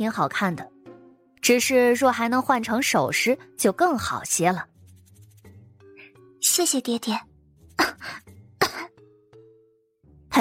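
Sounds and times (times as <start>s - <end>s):
speech: 0.0s - 0.8s, 1.4s - 4.7s, 6.4s - 8.3s
girl coughing: 8.6s - 9.0s.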